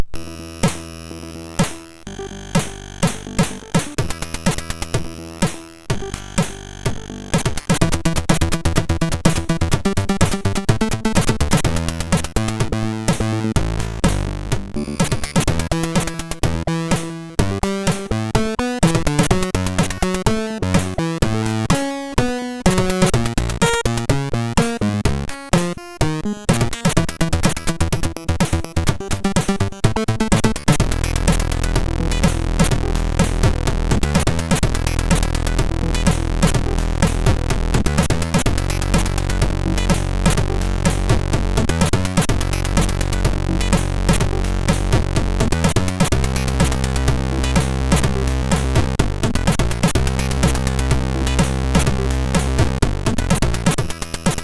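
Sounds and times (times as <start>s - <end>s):
untz beat on a MOS6581R4 chip: 1.6s - 54.4s.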